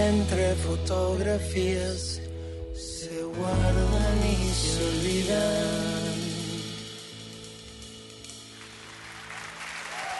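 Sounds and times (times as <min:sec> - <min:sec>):
speech: 0:00.1 - 0:06.3
audience applause: 0:08.6 - 0:10.1.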